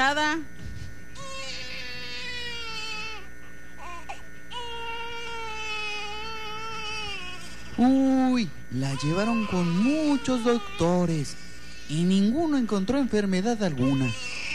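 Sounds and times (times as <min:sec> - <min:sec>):
speech: 0:00.1 - 0:00.6, 0:07.8 - 0:14.3
baby crying loudly as a sound effect in an audio story: 0:01.2 - 0:07.6, 0:08.8 - 0:12.0, 0:13.8 - 0:14.5.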